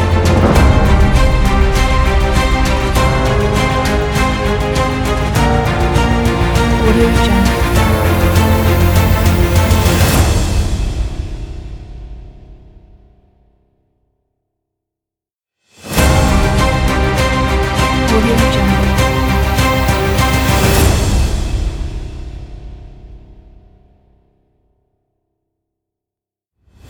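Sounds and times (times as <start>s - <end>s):
epic cinematic logo intro: 0.0s - 12.8s, 15.8s - 23.7s.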